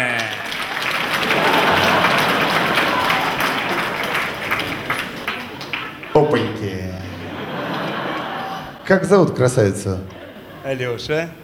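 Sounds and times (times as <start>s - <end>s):
audience applause: 0.0s - 8.8s
laughter: 0.0s - 11.4s
speech: 8.9s - 11.4s.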